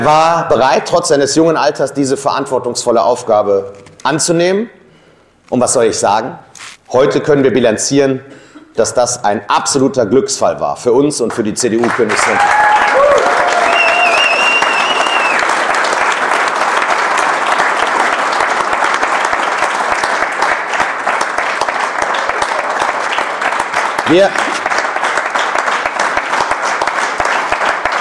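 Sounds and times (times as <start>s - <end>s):
speech: 0.0s - 4.8s, 5.5s - 13.3s, 24.1s - 24.4s
audience applause: 11.8s - 27.9s
whistles and cheers: 12.2s - 15.6s.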